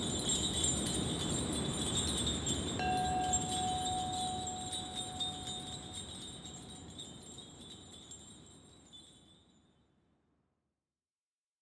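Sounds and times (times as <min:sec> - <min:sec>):
wind: 0:00.0 - 0:09.0
bells: 0:00.0 - 0:09.6
Tibetan singing bowls: 0:02.7 - 0:08.2
gongs: 0:02.8 - 0:06.6.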